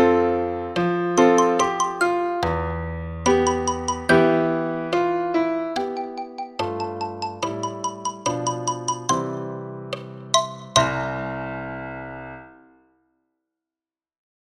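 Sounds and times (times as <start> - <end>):
piano: 0.0 - 13.0
xylophone: 1.2 - 5.2, 5.8 - 11.2.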